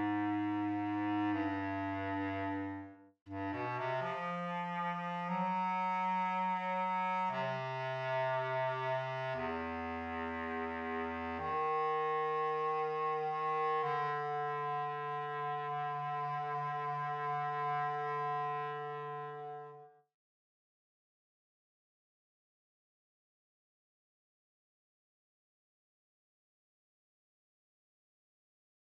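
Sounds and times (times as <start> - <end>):
bass clarinet: 0.0 - 20.0.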